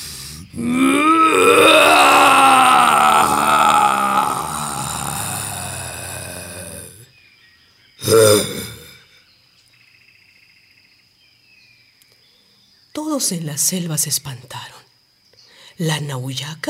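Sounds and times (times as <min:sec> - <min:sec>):
speech: 0:00.6 - 0:00.9, 0:13.3 - 0:14.8, 0:15.8 - 0:16.6
jaguar roar: 0:00.6 - 0:07.0.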